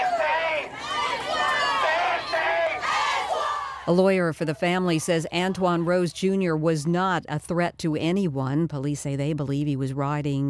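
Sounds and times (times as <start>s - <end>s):
protest crowd of demonstrators shouting in East Pittsburgh: 0.0s - 6.1s
speech: 3.9s - 10.4s.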